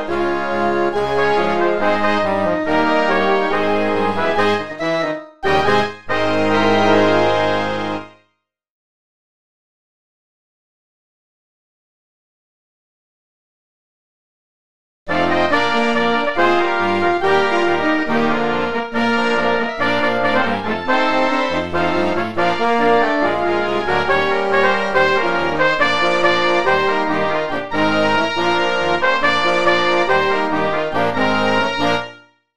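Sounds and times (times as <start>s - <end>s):
marching band playing a train medley: 0.0s - 8.0s, 15.1s - 32.1s.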